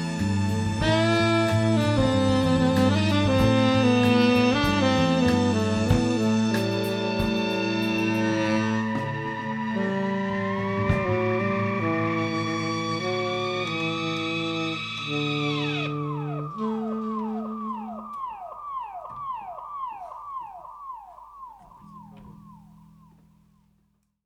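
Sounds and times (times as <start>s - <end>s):
orchestra playing: 0.0s - 18.3s
siren call: 0.0s - 22.9s.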